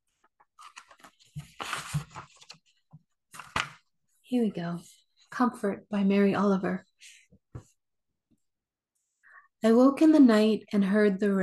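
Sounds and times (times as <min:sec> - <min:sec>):
book pages being flipped: 0:00.1 - 0:03.9
speech: 0:04.3 - 0:06.9, 0:09.6 - 0:11.4.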